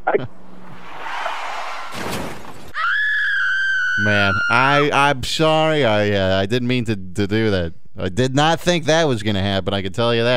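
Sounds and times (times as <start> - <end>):
speech: 0.1 - 0.4, 4.0 - 10.3
car wreck impact: 0.4 - 2.8
loud crashing shattering burst: 1.8 - 2.8.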